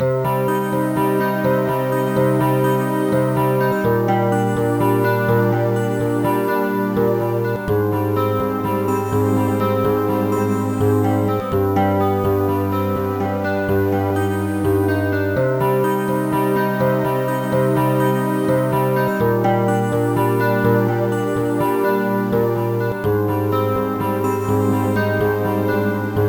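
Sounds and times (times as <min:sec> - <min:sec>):
light guitar: 0:00.0 - 0:26.2.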